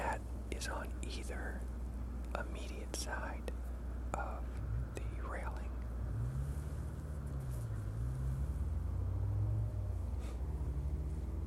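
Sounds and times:
speech: 0:00.6 - 0:04.6, 0:05.3 - 0:05.7
motorcycle engine passing: 0:05.9 - 0:11.4.

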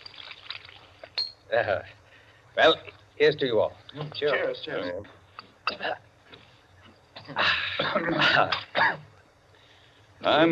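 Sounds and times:
soda water poured into a glass: 0:00.0 - 0:01.0
speech: 0:01.5 - 0:02.0, 0:02.6 - 0:06.1, 0:07.3 - 0:09.0, 0:10.2 - 0:10.5.

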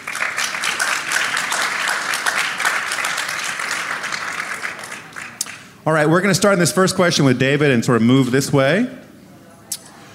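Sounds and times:
audience applause greeting a panel: 0:00.0 - 0:05.8
speech: 0:05.8 - 0:09.0.

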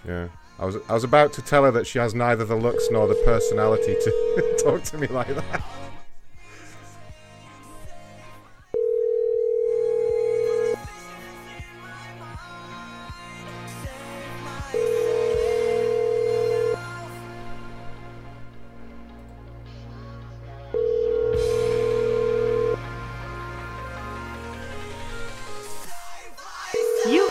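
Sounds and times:
speech: 0:00.0 - 0:05.8
telephone ringback tone during a call: 0:02.6 - 0:04.8, 0:08.8 - 0:10.8, 0:14.8 - 0:16.8, 0:20.8 - 0:22.8, 0:26.8 - 0:27.2
laughter: 0:04.4 - 0:06.0.

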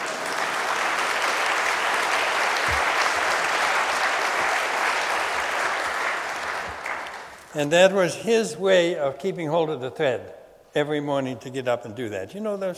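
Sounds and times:
audience applause: 0:00.0 - 0:07.5
speech: 0:07.6 - 0:12.7.

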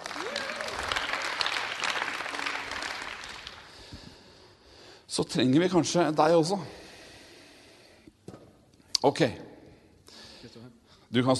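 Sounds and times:
crowd clapping: 0:00.0 - 0:04.0
speech: 0:05.1 - 0:06.8, 0:09.0 - 0:09.4, 0:11.1 - 0:11.3.

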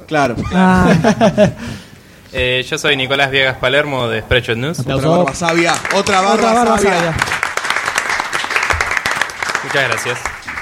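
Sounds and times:
speech: 0:00.1 - 0:07.4, 0:09.6 - 0:10.3
laughter: 0:00.4 - 0:01.7
sustained audience applause: 0:05.2 - 0:10.6.

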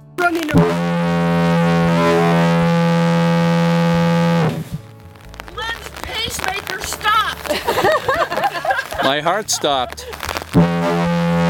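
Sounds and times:
long loud horn blast: 0:00.0 - 0:04.9, 0:10.6 - 0:11.4
laughter: 0:07.4 - 0:10.3
speech: 0:09.1 - 0:11.1.

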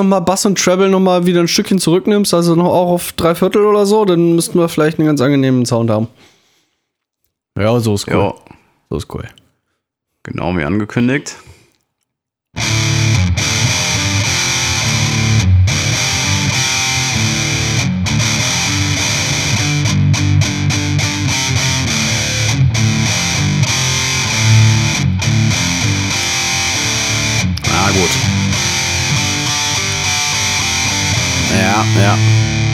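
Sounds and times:
speech: 0:00.0 - 0:06.3, 0:07.6 - 0:09.4, 0:10.3 - 0:11.6, 0:31.6 - 0:32.4
electric guitar through distortion pedal: 0:12.6 - 0:32.7.

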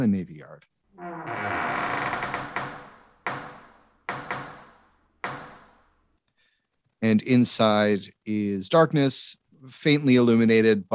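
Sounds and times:
speech: 0:00.0 - 0:02.1, 0:07.0 - 0:10.9
massive double doors creaking open: 0:01.0 - 0:05.8.

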